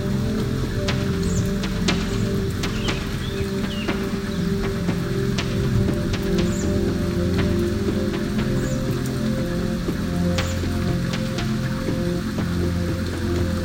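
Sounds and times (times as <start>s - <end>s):
low thunderstorm rumble: 0.0s - 13.6s
raindrops pattering: 0.0s - 13.6s.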